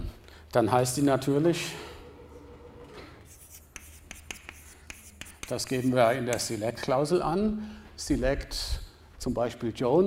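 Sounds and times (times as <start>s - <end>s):
steady low noise: 0.0s - 10.0s
speech: 0.5s - 1.9s, 5.5s - 10.0s
chalk writing an SQL query on a blackboard: 3.2s - 6.6s.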